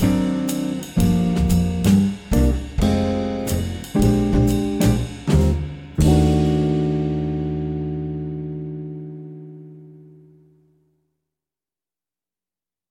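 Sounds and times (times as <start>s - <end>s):
muted piano swing etude: 0.0s - 7.2s.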